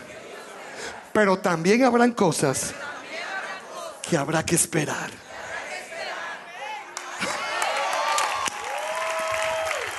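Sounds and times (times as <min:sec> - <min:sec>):
speech: 0:01.2 - 0:02.9, 0:04.1 - 0:05.2
audience applause: 0:06.9 - 0:09.9.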